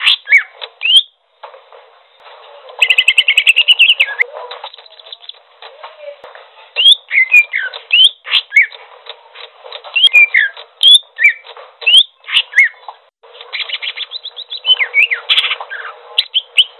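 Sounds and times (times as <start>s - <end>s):
bird singing trills: 0.0s - 1.2s, 2.8s - 5.4s, 6.8s - 8.8s, 10.0s - 12.9s, 13.5s - 16.7s.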